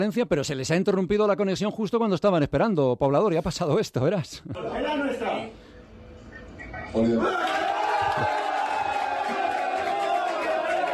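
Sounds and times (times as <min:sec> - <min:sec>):
speech: 0:00.0 - 0:05.6, 0:06.9 - 0:07.6
crowd of fans shouting and cheering: 0:07.1 - 0:10.9.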